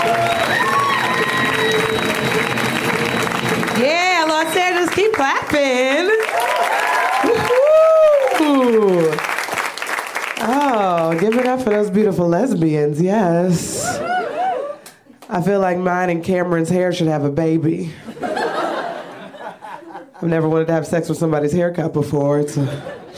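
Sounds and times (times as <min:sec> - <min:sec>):
audience applause welcoming a comedian to the stage: 0:00.0 - 0:11.9
speech: 0:11.5 - 0:14.0, 0:15.4 - 0:18.3, 0:20.2 - 0:23.0
laughter: 0:18.0 - 0:20.2, 0:22.6 - 0:23.1.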